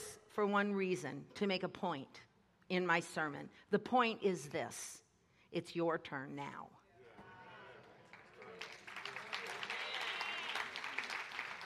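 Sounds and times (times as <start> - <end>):
speech: 0.4 - 6.8
audience applause: 7.7 - 11.6.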